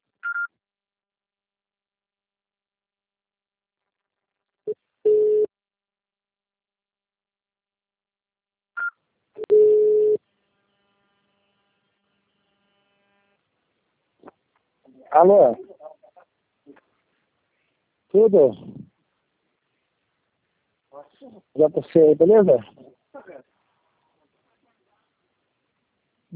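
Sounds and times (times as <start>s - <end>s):
voicemail beep tones on a phone line: 8.8s - 10.2s
speech: 15.1s - 15.7s, 18.1s - 18.8s, 21.2s - 23.4s.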